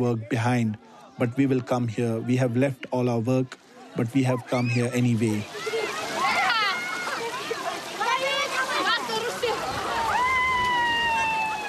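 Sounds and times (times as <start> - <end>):
speech: 0.0 - 5.8
crowd of overlapping voices: 0.0 - 11.6
people wading and splashing through spring water: 0.0 - 11.6
children calling: 4.2 - 11.6.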